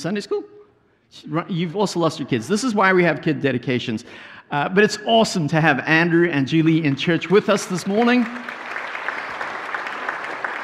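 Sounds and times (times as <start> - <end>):
speech: 0.0 - 8.7
church audience clapping: 6.9 - 10.6.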